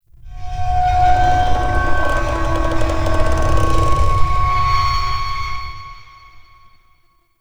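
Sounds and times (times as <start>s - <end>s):
asteroid low creaks: 0.6s - 5.4s.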